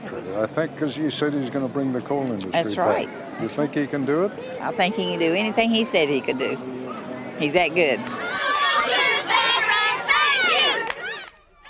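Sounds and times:
street crowd: 0.0s - 11.6s
speech: 0.3s - 8.5s
kids chanting: 8.1s - 11.2s.

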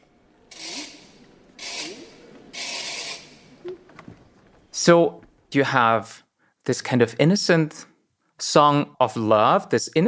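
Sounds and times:
clockwork mechanism of a mechanical doll being rewound: 0.5s - 3.4s
speech: 4.8s - 10.0s.

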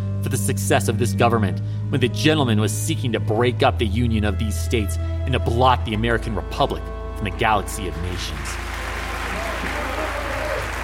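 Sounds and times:
speech: 0.2s - 8.8s
raucous crowd applause in packed gallery: 8.2s - 10.8s.

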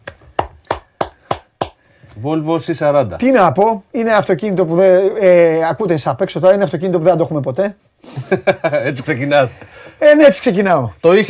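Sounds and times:
hand clapping: 0.0s - 1.8s
speech: 2.2s - 11.2s
laughter: 8.1s - 9.0s.

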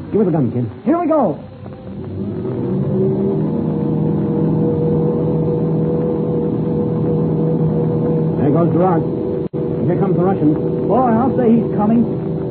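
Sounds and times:
speech: 0.0s - 1.5s, 8.6s - 9.2s, 9.9s - 12.2s
airplane motors running up before takeoff in an air race: 1.6s - 12.5s.

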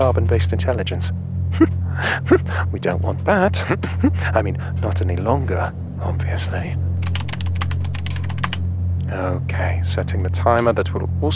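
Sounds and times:
speech: 0.0s - 6.9s, 9.1s - 11.3s
typing on a computer keyboard: 6.5s - 8.7s.

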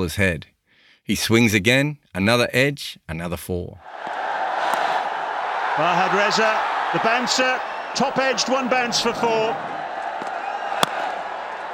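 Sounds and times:
speech: 0.0s - 0.5s, 1.1s - 4.2s, 5.8s - 9.7s
cricket crowd cheering: 3.8s - 11.7s.

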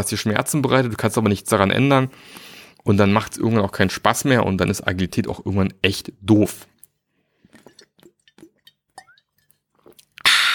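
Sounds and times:
speech: 0.0s - 6.7s
bottle of sparkling water clicking and clinking: 7.6s - 10.0s.

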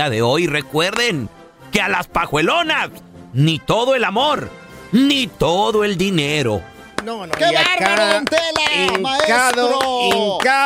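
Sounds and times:
speech: 0.0s - 10.6s
hand clapping: 7.0s - 10.6s.

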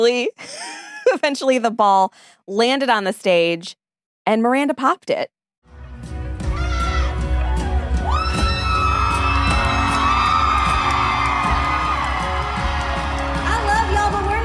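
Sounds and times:
speech: 0.0s - 5.4s
concert crowd cheering and applauding: 6.3s - 14.4s.

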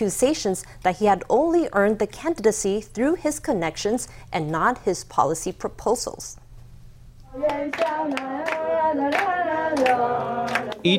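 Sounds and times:
speech: 0.0s - 6.4s, 7.3s - 10.9s
lawmakers clapping: 7.3s - 10.9s.

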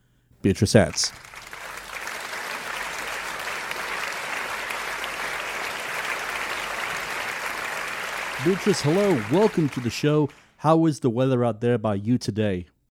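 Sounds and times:
speech: 0.4s - 1.3s, 8.4s - 12.9s
crowd applause greeting a Paralympic athlete from Colorado: 0.8s - 10.5s.

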